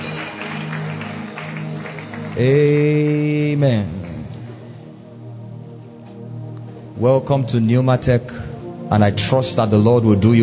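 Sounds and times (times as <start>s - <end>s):
audience clapping: 0.0s - 4.6s
speech: 2.4s - 4.0s, 7.0s - 10.4s.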